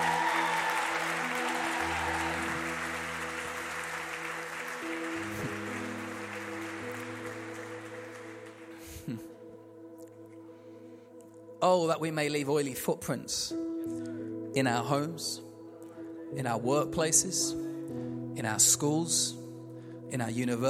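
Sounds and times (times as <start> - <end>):
audience applause: 0.0 - 8.9
speech: 9.1 - 9.3, 11.6 - 13.6, 14.6 - 15.5, 16.4 - 19.4, 20.1 - 20.6.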